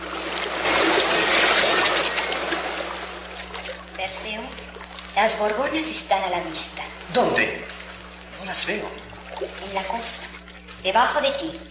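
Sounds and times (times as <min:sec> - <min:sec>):
rough sea waves crashing against rocks: 0:00.0 - 0:03.3
speech: 0:05.2 - 0:07.7, 0:08.5 - 0:11.6.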